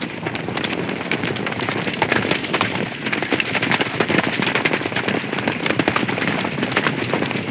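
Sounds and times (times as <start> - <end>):
cavalry horses galloping: 0.0 - 7.4.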